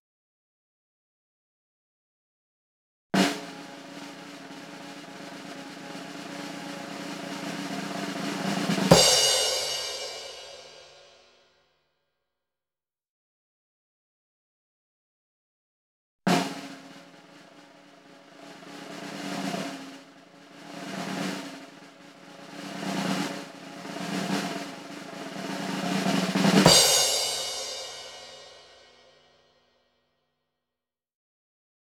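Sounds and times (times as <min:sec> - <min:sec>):
snare drum roll: 0:03.2 - 0:11.2, 0:16.3 - 0:29.2.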